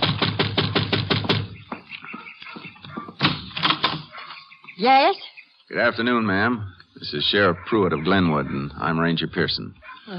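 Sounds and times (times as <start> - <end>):
knocking on a door: 0.0 - 1.6
speech: 4.8 - 10.1.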